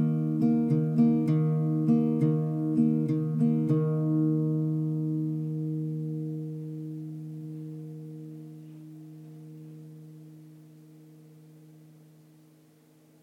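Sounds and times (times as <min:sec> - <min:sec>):
chill acoustic guitar groove: 0:00.0 - 0:10.2.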